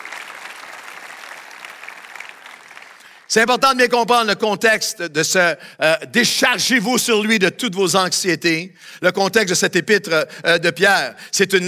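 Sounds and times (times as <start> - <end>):
audience applauding: 0.0 - 3.3
speech: 3.3 - 11.6.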